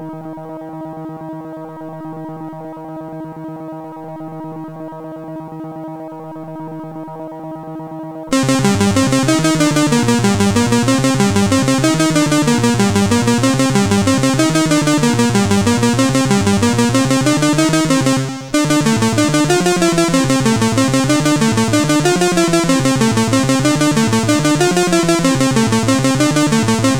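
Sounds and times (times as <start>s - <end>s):
CSG 8580 sound chip: 8.3s - 26.9s.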